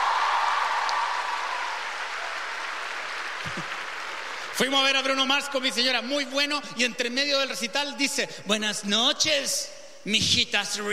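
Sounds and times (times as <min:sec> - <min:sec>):
audience applause: 0:00.0 - 0:04.6
speech: 0:04.6 - 0:10.9.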